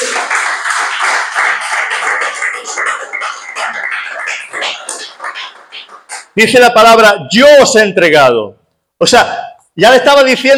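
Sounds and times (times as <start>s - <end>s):
audience clapping: 0.0s - 6.6s
speech: 2.6s - 3.8s, 6.4s - 10.5s.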